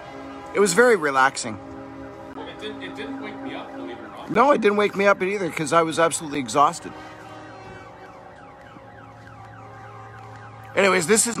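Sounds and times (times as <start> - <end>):
constant truck and train type horns: 0.0 - 9.1
speech: 0.5 - 1.7, 2.6 - 7.1, 10.8 - 11.3.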